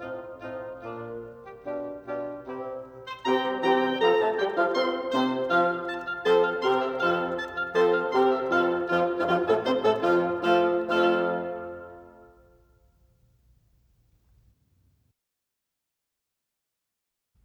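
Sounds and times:
two oboes playing: 0.0 - 12.5.

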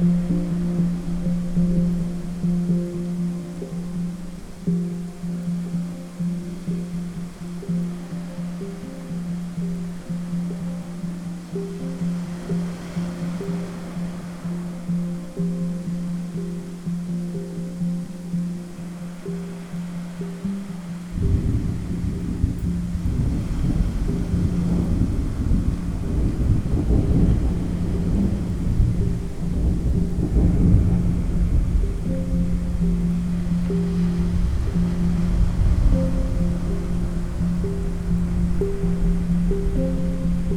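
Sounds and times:
hang drum playing new age music: 0.0 - 40.5
ocean waves: 0.0 - 40.5
gentle thunderstorm: 21.1 - 40.5.

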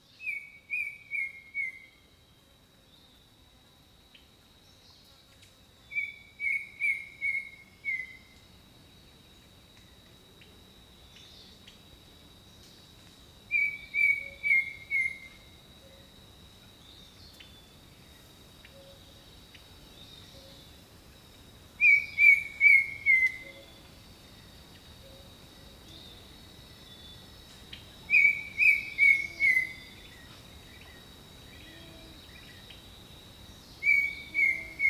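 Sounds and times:
high insect drone: 0.0 - 34.8
jungle bird whistling: 13.5 - 15.3, 21.8 - 23.6, 28.1 - 29.9, 33.8 - 34.8.

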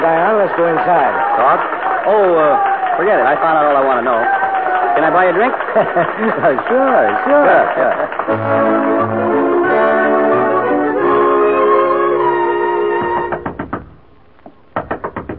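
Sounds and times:
speech: 0.4 - 4.4, 5.0 - 9.9
laughter: 4.7 - 8.2
sustained tonal music: 8.3 - 13.6
sharp knocks on a dressing room door: 13.0 - 15.3.

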